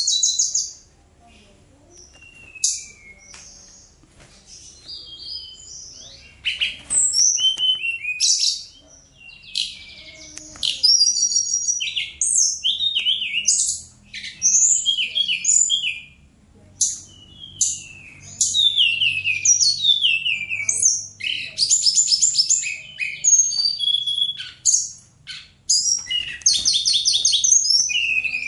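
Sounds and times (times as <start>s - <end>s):
bird singing: 0.0s - 0.8s, 1.8s - 28.4s.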